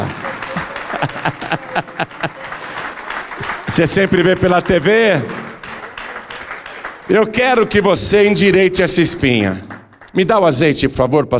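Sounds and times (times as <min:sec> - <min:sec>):
laughter: 0:00.0 - 0:04.9
audience applauding: 0:00.0 - 0:10.3
speech: 0:01.2 - 0:02.0, 0:03.7 - 0:05.4, 0:07.1 - 0:11.3.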